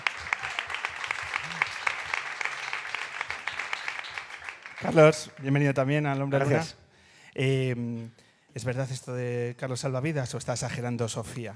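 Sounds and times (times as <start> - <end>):
audience applause: 0.0 - 5.8
speech: 4.8 - 6.8, 7.4 - 11.5.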